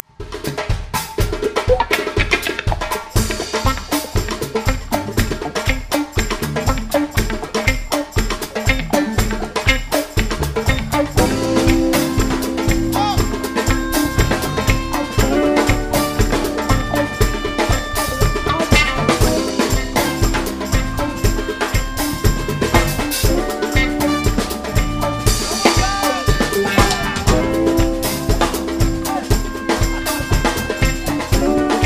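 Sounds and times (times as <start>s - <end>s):
afro funk music: 0.0s - 31.8s.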